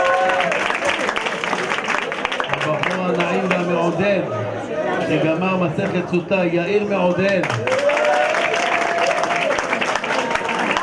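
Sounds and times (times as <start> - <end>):
audience applause: 0.0 - 3.9, 7.3 - 10.8
speech: 5.1 - 7.8.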